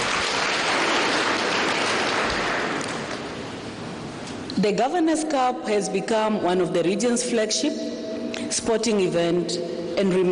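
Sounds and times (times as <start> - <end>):
audience applause: 0.0 - 3.3
speech: 4.6 - 10.3.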